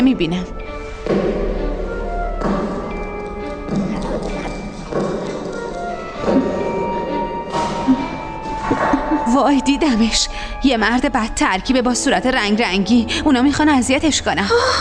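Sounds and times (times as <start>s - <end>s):
speech: 0.0s - 1.4s, 9.4s - 14.7s
footsteps: 0.9s - 9.2s.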